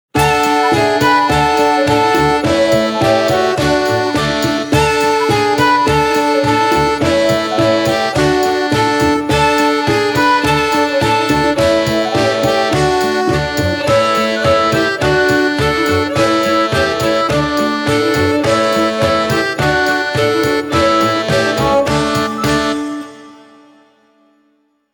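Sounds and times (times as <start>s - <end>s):
instrumental verse: 0.1s - 24.9s.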